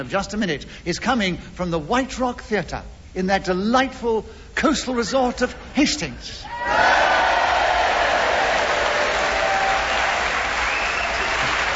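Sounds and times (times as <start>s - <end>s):
speech: 0.0s - 7.2s
theatre audience applauding: 6.7s - 11.7s.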